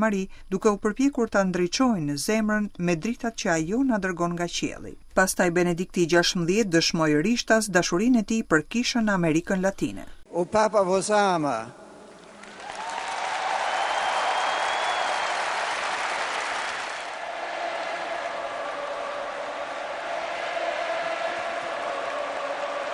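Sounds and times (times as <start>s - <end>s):
speech: 0.0s - 11.8s
crowd applause interrupting a speech by Pope Benedict XVI: 12.1s - 22.9s.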